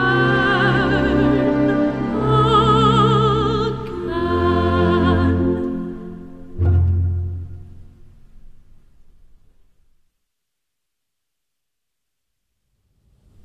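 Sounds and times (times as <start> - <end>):
symphony orchestra playing: 0.0 - 8.2.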